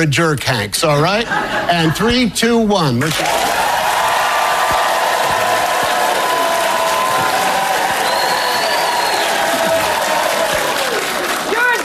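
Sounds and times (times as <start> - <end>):
speech: 0.0 - 3.6
audience applause: 3.1 - 11.8.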